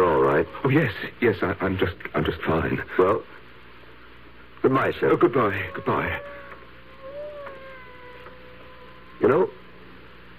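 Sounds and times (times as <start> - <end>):
speech: 0.4 - 3.4, 4.6 - 6.4, 9.2 - 9.6
cat meowing: 5.4 - 9.8.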